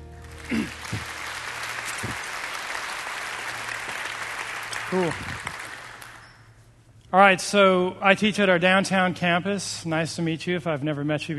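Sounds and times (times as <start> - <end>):
church audience applause welcoming a pastor: 0.0 - 6.4
speech: 4.9 - 5.3, 7.1 - 11.3.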